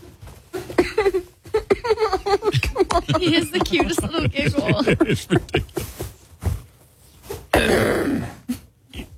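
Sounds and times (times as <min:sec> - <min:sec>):
laughter: 0:00.8 - 0:06.1
speech: 0:03.1 - 0:05.9
man's loud harsh throat clearing: 0:07.5 - 0:08.4.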